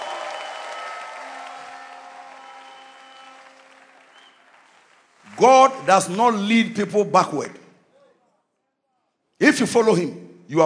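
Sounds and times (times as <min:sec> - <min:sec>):
congregation clapping at a church service: 0:00.0 - 0:07.1
speech: 0:05.4 - 0:07.6, 0:09.6 - 0:10.6.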